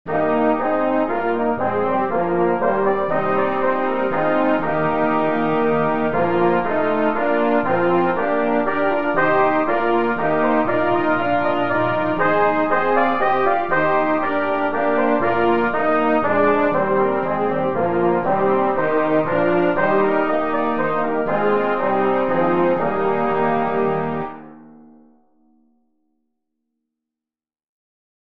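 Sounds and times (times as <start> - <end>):
hymn: 0.1 - 24.5.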